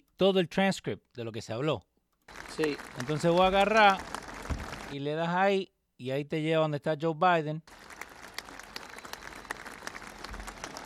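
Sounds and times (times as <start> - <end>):
speech: 0.2 - 1.9, 2.6 - 4.1, 4.9 - 7.8
audience applause at a eulogy: 2.3 - 5.0, 7.7 - 10.8.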